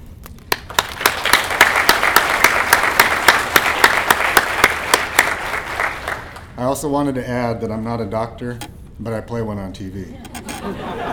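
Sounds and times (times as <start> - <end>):
conference audience applause: 0.5 - 6.5
speech: 6.6 - 11.1
laughter: 10.1 - 11.1.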